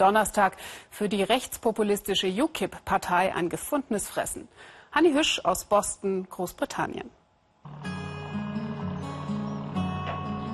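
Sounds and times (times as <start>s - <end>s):
speech: 0.0s - 8.0s
fishing boat engine droning as it casts off from Boston harbour, England: 7.7s - 10.5s.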